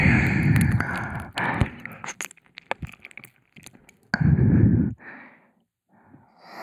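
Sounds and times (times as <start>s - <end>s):
realistic ear licking: 0.0s - 4.9s.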